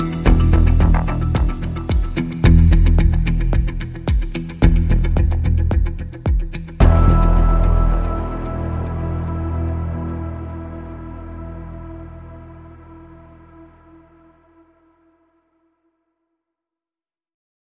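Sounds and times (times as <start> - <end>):
guitars: 0.0 - 13.8.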